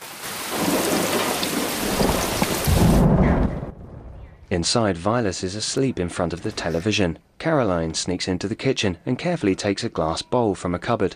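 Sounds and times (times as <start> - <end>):
steady heavy rain on a stormy night: 0.0 - 3.8
thunder rumbling on a stormy night: 0.5 - 4.8
speech: 4.5 - 11.1.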